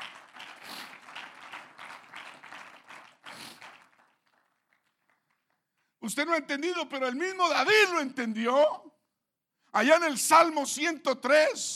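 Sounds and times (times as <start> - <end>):
audience applauding: 0.0 - 5.8
speech: 6.1 - 8.9, 9.8 - 11.7.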